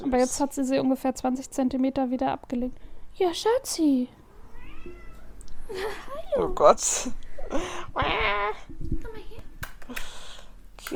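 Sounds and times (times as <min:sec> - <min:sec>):
speech: 0:00.0 - 0:04.2, 0:05.7 - 0:09.0
cat meowing close to a microphone: 0:04.3 - 0:05.4.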